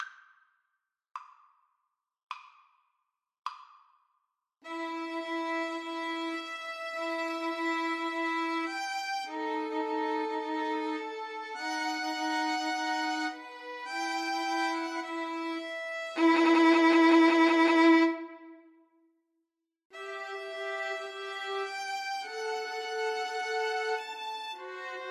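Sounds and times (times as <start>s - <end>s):
violin trio: 4.6s - 18.6s, 20.0s - 25.0s.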